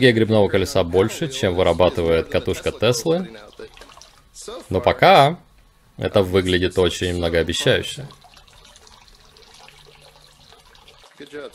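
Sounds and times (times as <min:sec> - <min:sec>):
speech: 0:00.0 - 0:03.8, 0:04.4 - 0:05.4, 0:06.0 - 0:08.2, 0:11.2 - 0:11.5
water filling a glass: 0:01.3 - 0:04.6, 0:07.2 - 0:11.5.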